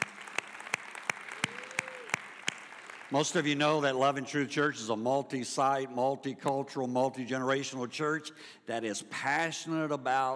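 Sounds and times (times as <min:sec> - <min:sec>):
church audience clapping to welcome joining campuses: 0:00.0 - 0:03.4
speech: 0:03.1 - 0:10.3.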